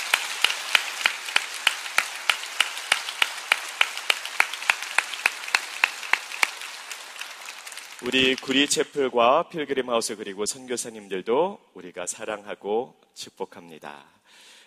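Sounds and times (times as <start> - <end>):
audience applause: 0.0 - 8.9
speech: 8.0 - 14.6.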